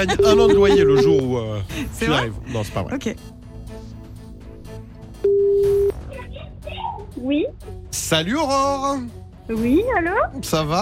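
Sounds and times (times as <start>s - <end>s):
laughter: 0.0s - 2.3s
speech: 0.0s - 3.4s, 7.2s - 10.7s
electronic telephone ringback tone: 5.2s - 5.9s.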